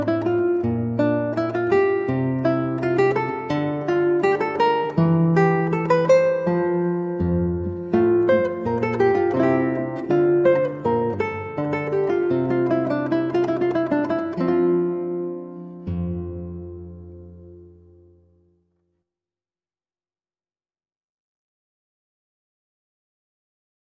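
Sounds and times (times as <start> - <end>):
8-string guitar: 0.0 - 18.6.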